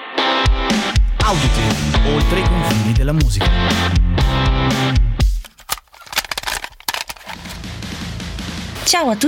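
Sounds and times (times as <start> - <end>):
podcast theme jingle, metal music: 0.3 - 5.2
speech: 1.4 - 5.1, 8.9 - 9.2.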